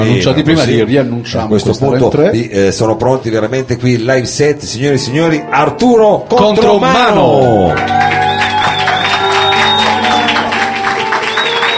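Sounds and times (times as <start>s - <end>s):
speech: 0.0s - 8.2s
crowd applause: 7.4s - 11.7s
whoops and cheers: 7.7s - 11.7s.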